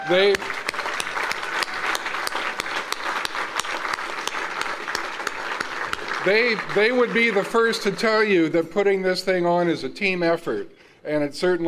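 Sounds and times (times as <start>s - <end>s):
audience applause: 0.0s - 8.5s
speech: 0.1s - 0.6s, 6.2s - 11.6s.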